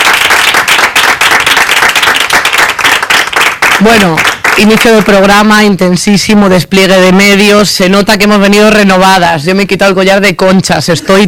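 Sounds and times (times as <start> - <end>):
audience applause: 0.0 - 5.0
speech: 3.8 - 11.2.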